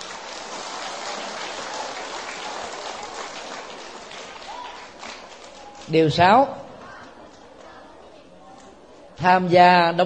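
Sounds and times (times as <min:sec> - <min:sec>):
large audience applause: 0:00.0 - 0:05.9
speech: 0:05.9 - 0:06.6, 0:09.2 - 0:10.0.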